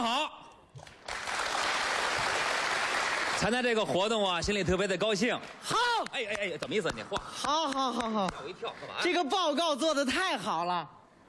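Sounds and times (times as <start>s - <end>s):
audience applause welcoming two comedians for a crosstalk act: 0.8s - 3.5s
speech: 3.4s - 11.2s.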